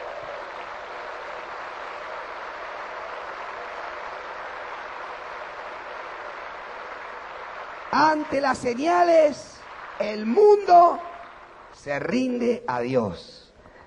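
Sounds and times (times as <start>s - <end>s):
audience applauding: 0.0s - 12.4s
speech: 7.9s - 11.1s, 11.8s - 13.4s.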